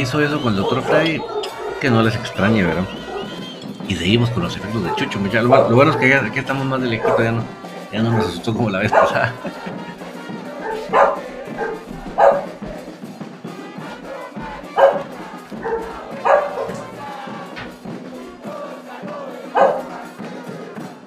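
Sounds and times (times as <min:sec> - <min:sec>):
speech: 0:00.0 - 0:03.1, 0:03.9 - 0:09.9
laughter: 0:00.0 - 0:13.0, 0:14.0 - 0:20.8
crowd murmur and voices: 0:00.0 - 0:21.0
small dog barking: 0:00.6 - 0:03.4, 0:04.8 - 0:06.3, 0:06.9 - 0:09.4, 0:10.6 - 0:12.7, 0:14.2 - 0:17.0, 0:19.5 - 0:20.0.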